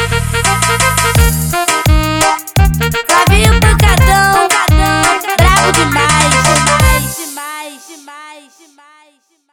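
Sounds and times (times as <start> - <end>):
brega funk remix: 0.0 - 7.5.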